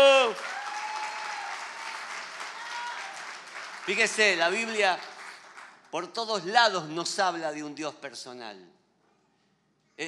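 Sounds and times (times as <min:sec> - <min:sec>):
audience applause: 0:00.0 - 0:05.9
speech: 0:03.9 - 0:05.1, 0:05.9 - 0:08.8.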